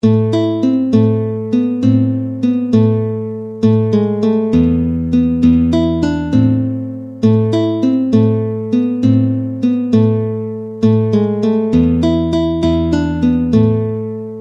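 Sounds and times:
guitar: 0.0s - 14.3s.

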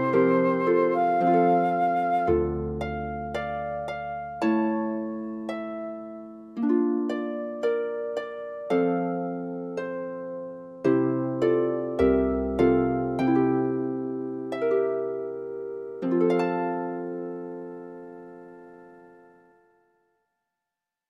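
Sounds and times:
flute: 0.0s - 3.1s
harp: 0.0s - 20.0s.

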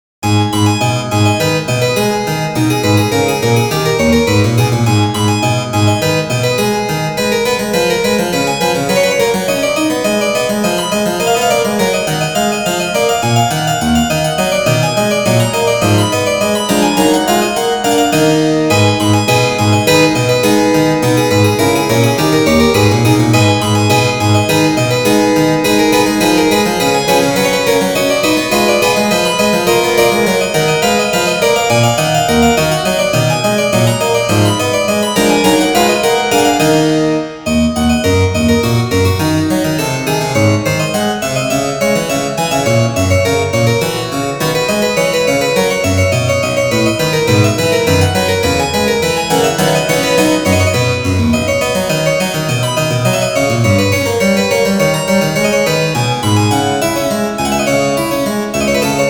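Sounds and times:
baroque piece on harpsichord: 0.2s - 59.0s.

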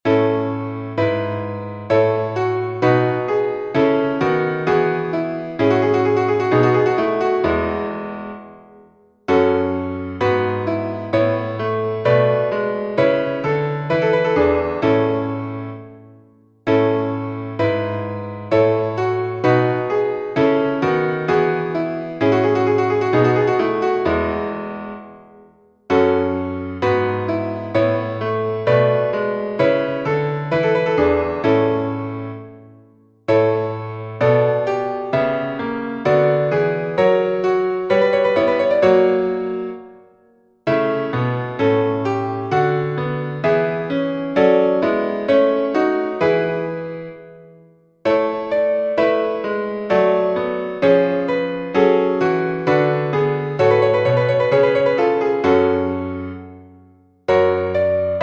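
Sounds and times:
chorale for piano: 0.0s - 58.2s.

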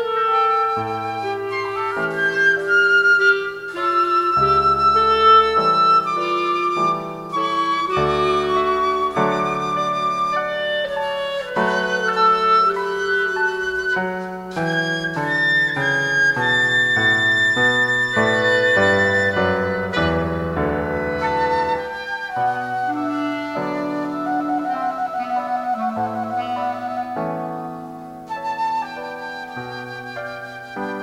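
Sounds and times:
clarinet in a trio: 0.0s - 31.0s
flute in a trio: 0.0s - 31.0s
piano in a trio: 0.0s - 31.0s.

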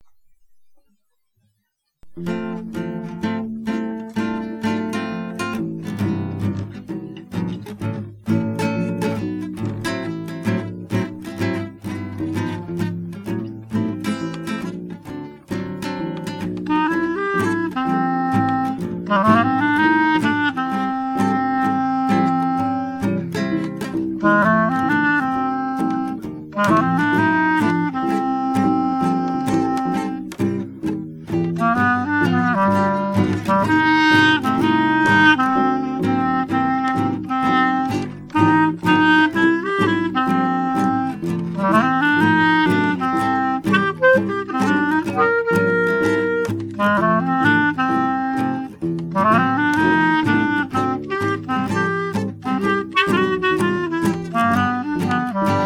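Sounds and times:
blues music: 2.0s - 55.6s.

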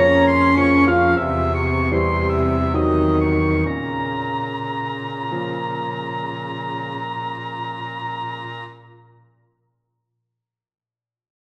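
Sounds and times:
ensemble playing a waltz: 0.0s - 9.1s.

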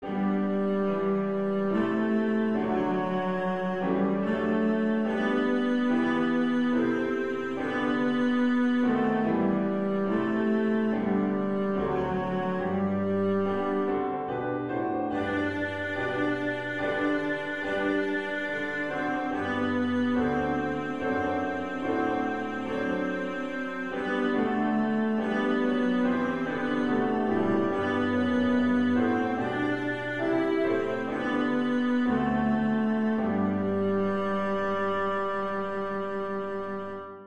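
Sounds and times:
national anthem: 0.0s - 37.2s.

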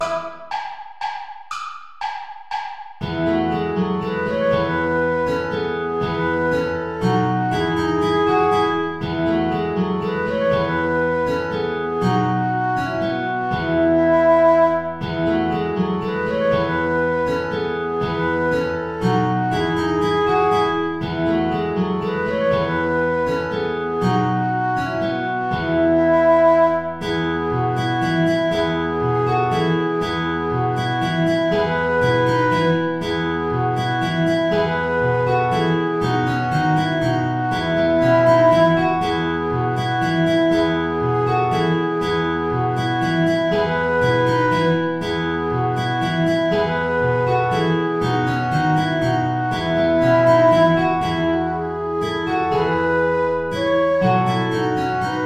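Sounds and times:
saltarello play-along backing track without guitar: 0.0s - 55.2s.

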